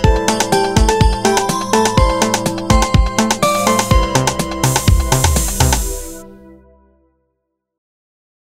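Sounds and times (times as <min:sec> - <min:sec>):
electronica music: 0:00.1 - 0:06.5.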